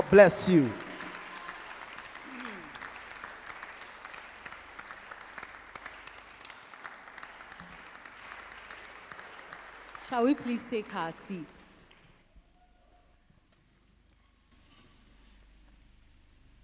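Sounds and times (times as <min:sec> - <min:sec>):
audience applause at a church gathering welcoming a woman onto stage: 0:00.0 - 0:12.3
speech: 0:00.1 - 0:00.8, 0:10.2 - 0:11.6.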